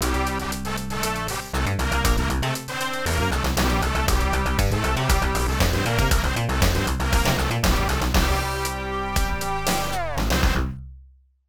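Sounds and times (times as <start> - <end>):
tournament victory music: 0.0 - 10.7.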